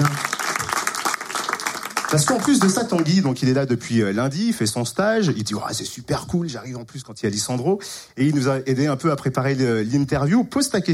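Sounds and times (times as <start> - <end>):
audience applauding: 0.0 - 3.3
speech: 2.1 - 10.9.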